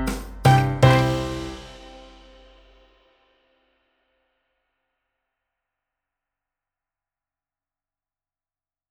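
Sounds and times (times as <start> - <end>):
Mex clap backing track: 0.0 - 1.8.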